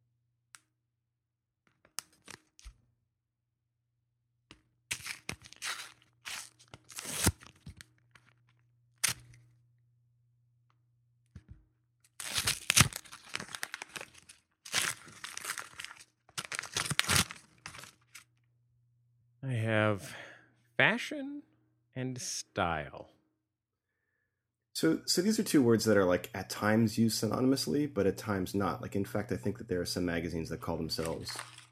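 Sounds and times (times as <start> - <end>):
envelope being ripped open: 1.9 - 2.8, 4.9 - 8.2, 9.0 - 9.4, 12.1 - 18.3, 31.0 - 31.7
speech: 21.0 - 21.4, 22.0 - 23.1, 24.8 - 31.6
faint steady low hum: 24.8 - 31.5.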